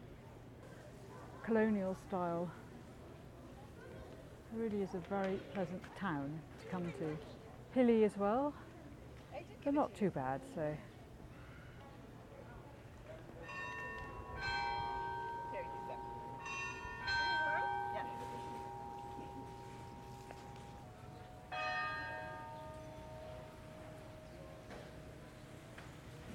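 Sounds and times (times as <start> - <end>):
murmur: 0.0 - 26.3
speech: 1.4 - 2.6, 4.5 - 8.6, 9.4 - 10.9
main church bell striking in the town square: 13.4 - 26.3.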